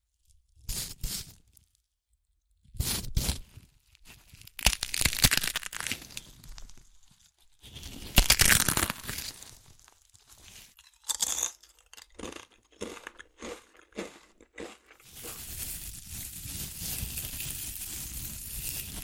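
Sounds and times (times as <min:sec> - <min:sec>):
chips crunchy crushing and eating: 0:04.0 - 0:19.0.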